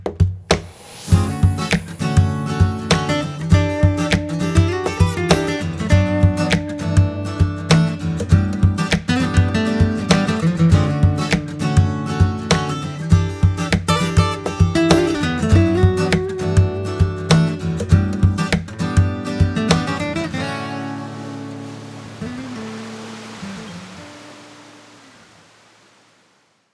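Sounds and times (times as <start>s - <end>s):
groove music: 0.2s - 20.8s.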